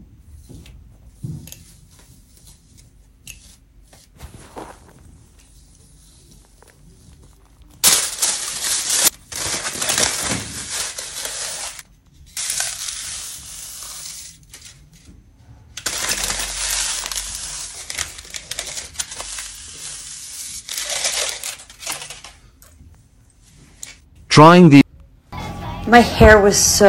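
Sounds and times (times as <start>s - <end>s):
aluminum foil crinkling in hair: 4.2s - 11.8s, 15.8s - 22.4s
speech: 24.4s - 24.8s, 25.9s - 26.8s.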